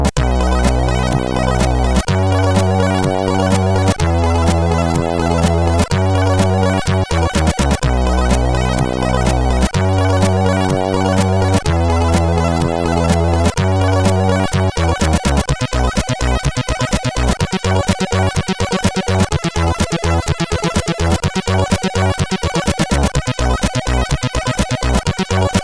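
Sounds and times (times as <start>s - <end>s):
weird sounds from CSG8580R5 SID chip: 0.1s - 25.6s.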